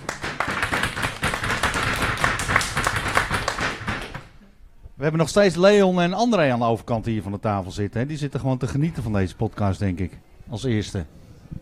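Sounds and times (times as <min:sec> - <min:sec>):
small group clapping: 0:00.0 - 0:04.4
speech: 0:05.0 - 0:11.2.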